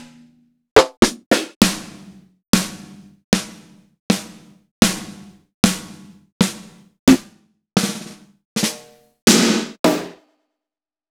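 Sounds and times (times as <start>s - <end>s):
Roland BK-5 snare drum hits: 0.8s - 1.9s, 4.9s - 10.1s.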